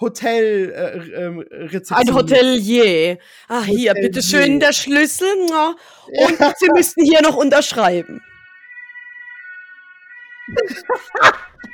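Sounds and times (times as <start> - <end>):
speech: 0.0 - 8.3, 10.5 - 11.7
ambulance siren: 2.0 - 2.9, 3.8 - 11.7
laughter: 6.1 - 7.1, 10.5 - 11.7.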